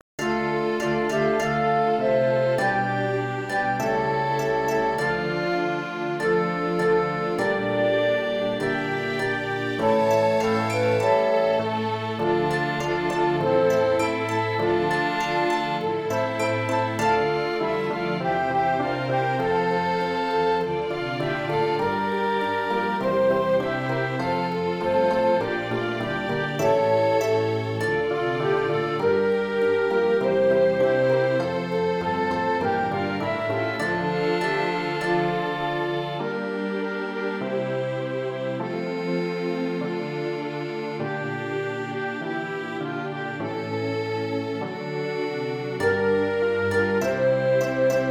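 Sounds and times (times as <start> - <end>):
orchestra: 0.2 - 48.1.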